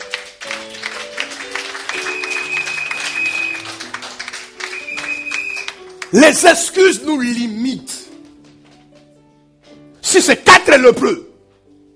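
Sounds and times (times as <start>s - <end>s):
church congregation clapping in praise of the Lord: 0.0s - 9.1s
speech: 6.1s - 8.0s, 10.2s - 11.3s.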